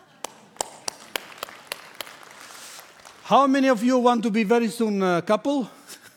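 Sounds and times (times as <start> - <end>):
audience clapping: 0.0 - 3.9
speech: 3.3 - 5.8.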